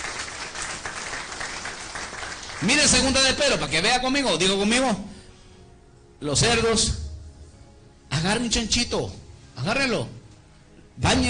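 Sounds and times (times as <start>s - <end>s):
church congregation applauding during a sermon: 0.0s - 3.7s
speech: 2.6s - 5.1s, 6.2s - 7.0s, 8.2s - 10.2s, 11.0s - 11.2s.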